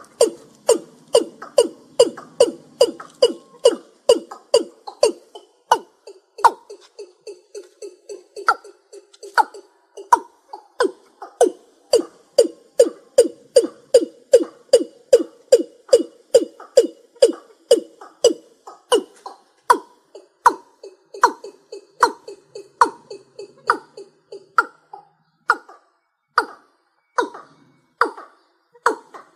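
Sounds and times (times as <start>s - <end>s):
rail calling: 0.0s - 29.3s.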